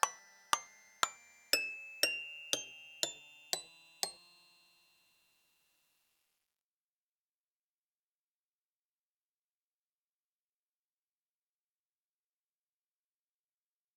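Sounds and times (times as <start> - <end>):
harp playing a scale: 0.0 - 5.2.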